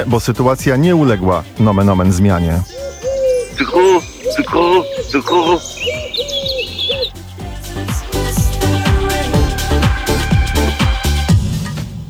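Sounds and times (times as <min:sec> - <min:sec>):
speech: 0:00.0 - 0:03.0, 0:03.6 - 0:06.4
loud rhythmic music with heavy drum hits: 0:00.0 - 0:12.0
pigeon warbling coo: 0:01.9 - 0:07.2.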